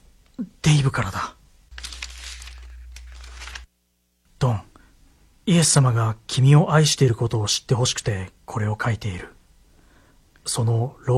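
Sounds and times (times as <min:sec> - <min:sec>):
speech: 0:00.4 - 0:01.4, 0:04.4 - 0:04.7, 0:05.5 - 0:09.4, 0:10.4 - 0:11.1
letter paper rustling as it is handled and opened: 0:01.7 - 0:03.7.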